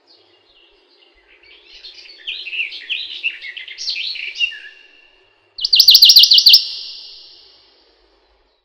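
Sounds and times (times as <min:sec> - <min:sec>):
Western Bonelli's warbler singing a fast even trill: 0:05.6 - 0:07.6.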